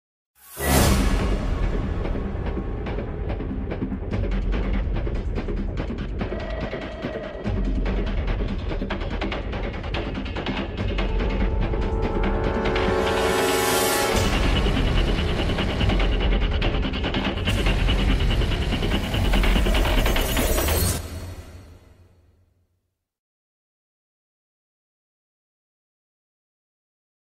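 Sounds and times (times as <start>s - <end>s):
suspense theme music: 0.5s - 22.0s.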